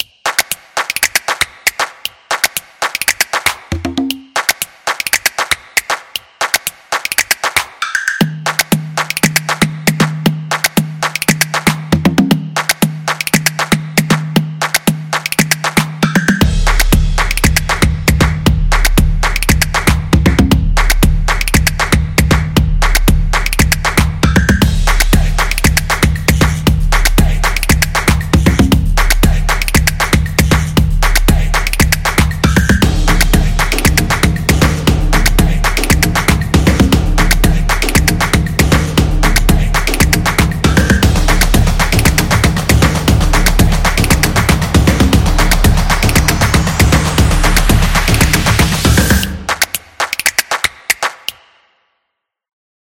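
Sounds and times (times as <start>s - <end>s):
funny beat: 0.0s - 51.4s.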